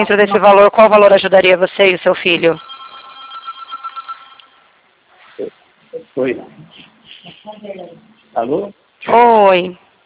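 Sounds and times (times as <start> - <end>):
speech: 0.0 - 2.7, 5.4 - 9.8
telephone ringing with electronic warble: 2.4 - 4.7.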